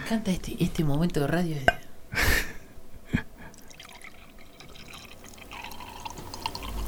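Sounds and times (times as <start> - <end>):
speech: 0.1 - 2.4
drink pouring into a glass: 3.5 - 6.8
glass clink: 3.6 - 6.8.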